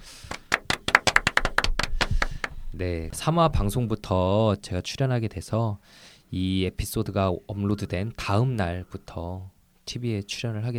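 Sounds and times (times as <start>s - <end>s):
hand clapping: 0.0s - 2.6s
speech: 2.8s - 10.7s.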